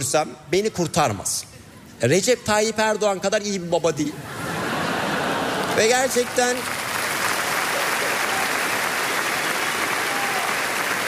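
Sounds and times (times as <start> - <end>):
speech: 0.0 - 4.4, 5.8 - 6.8
laughter: 4.1 - 6.3
audience applause: 4.9 - 11.0.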